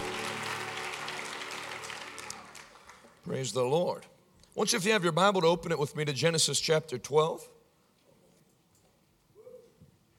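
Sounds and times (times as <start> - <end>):
audience applauding with hand claps: 0.0 - 3.5
speech: 3.3 - 7.6.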